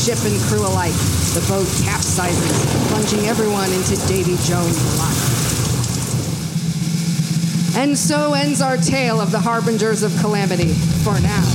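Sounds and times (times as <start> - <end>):
speech: 0.0 - 5.5, 7.8 - 11.5
thunder: 0.0 - 7.2
raging storm: 0.0 - 9.2
rain: 0.0 - 11.5.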